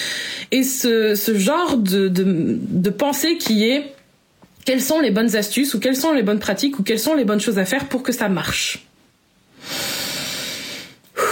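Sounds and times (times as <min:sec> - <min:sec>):
speech: 0:00.5 - 0:04.0, 0:04.7 - 0:08.9
breathy exhale: 0:09.6 - 0:11.3.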